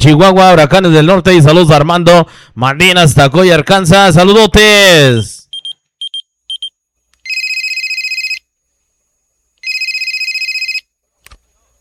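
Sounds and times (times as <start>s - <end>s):
speech: 0.0s - 5.4s
telephone ringing: 7.3s - 8.4s, 9.6s - 10.9s.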